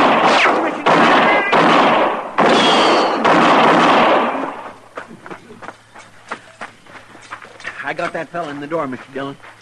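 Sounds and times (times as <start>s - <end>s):
gunfire in a radio drama shootout: 0.0s - 4.8s
speech: 7.9s - 9.5s.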